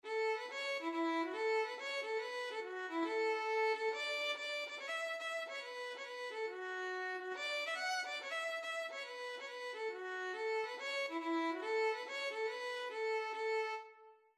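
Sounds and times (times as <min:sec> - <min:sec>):
violin playing Irish traditional music: 0:00.0 - 0:14.3.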